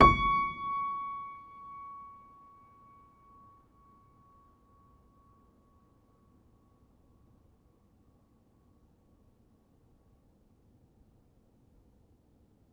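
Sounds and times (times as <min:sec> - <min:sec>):
upright piano: 0:00.0 - 0:01.6.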